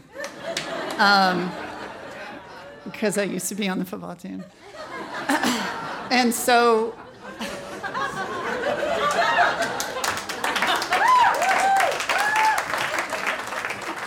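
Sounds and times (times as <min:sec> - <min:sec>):
laughter: 0:00.0 - 0:03.0, 0:04.4 - 0:11.8
speech: 0:01.0 - 0:01.6, 0:02.8 - 0:07.0
audience applause: 0:08.5 - 0:14.0.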